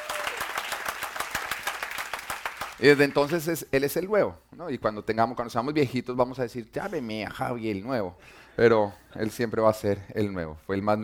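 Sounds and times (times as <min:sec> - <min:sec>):
audience applause: 0:00.0 - 0:03.2
speech: 0:02.8 - 0:11.0.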